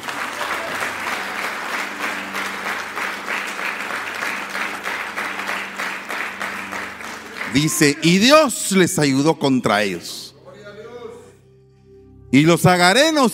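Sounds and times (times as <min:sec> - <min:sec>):
loud applause: 0:00.0 - 0:08.6
speech: 0:07.5 - 0:10.2, 0:12.3 - 0:13.3.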